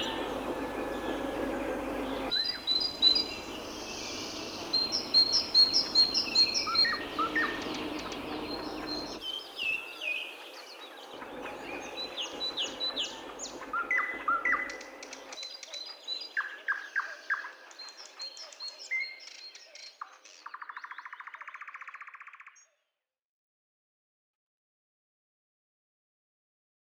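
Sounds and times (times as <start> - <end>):
great tit singing: 0.0 - 21.4.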